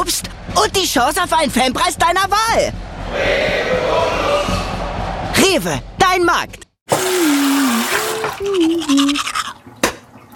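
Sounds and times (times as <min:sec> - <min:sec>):
speech: 0:00.1 - 0:04.6, 0:05.4 - 0:07.4, 0:08.4 - 0:09.4
water splash: 0:06.9 - 0:10.3
person humming a wavering tune: 0:07.1 - 0:09.4
person brushing teeth with a toothbrush: 0:07.2 - 0:09.6.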